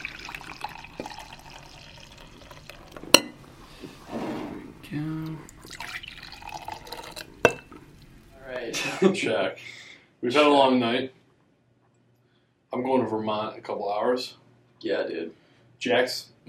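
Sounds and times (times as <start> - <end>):
soft dripping: 0.0 - 3.8, 4.9 - 8.6
brewed coffee pouring into a cup: 0.0 - 8.6
speech: 1.0 - 1.2, 4.9 - 5.8, 9.0 - 11.2, 12.8 - 16.4.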